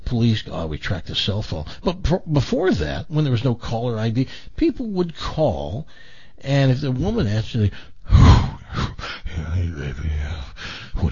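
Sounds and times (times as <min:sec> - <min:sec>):
speech: 0:00.1 - 0:08.3, 0:09.4 - 0:11.1
heavy breathing imitating an obscene phone caller: 0:05.9 - 0:06.4, 0:07.7 - 0:09.8, 0:10.4 - 0:11.1.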